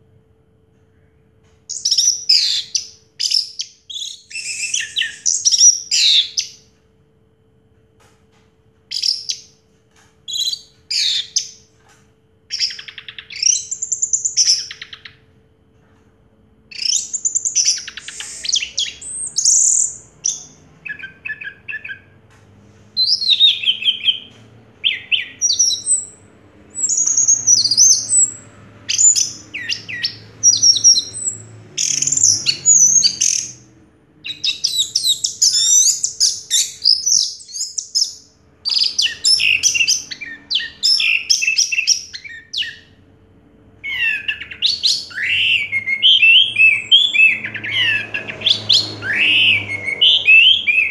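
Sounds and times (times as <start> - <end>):
orange-headed thrush whistling song: 1.7 - 6.6, 12.5 - 15.2, 16.7 - 22.2, 23.0 - 33.6, 34.2 - 42.9, 43.8 - 50.9.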